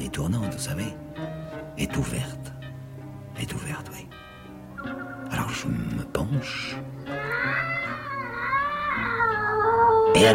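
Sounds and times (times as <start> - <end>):
speech: 0.2 - 2.5, 3.4 - 4.2, 4.8 - 7.7, 10.2 - 10.3
cat yowling: 7.0 - 10.3.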